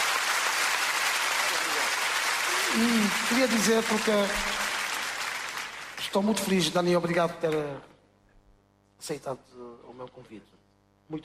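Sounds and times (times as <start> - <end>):
audience applause for a guest: 0.0 - 6.6
speech: 2.8 - 4.6, 6.1 - 7.9, 9.0 - 11.2.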